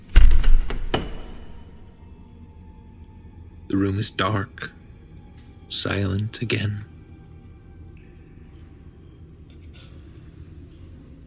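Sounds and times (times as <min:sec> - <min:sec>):
door shutting: 0:00.0 - 0:01.8
speech: 0:03.7 - 0:04.8, 0:05.7 - 0:06.9.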